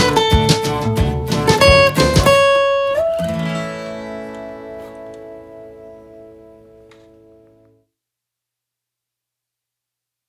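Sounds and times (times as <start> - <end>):
country song: 0.0 - 5.8.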